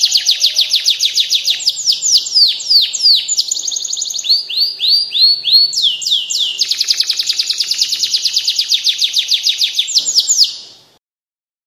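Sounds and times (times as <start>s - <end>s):
standard canary singing: 0.0s - 11.0s.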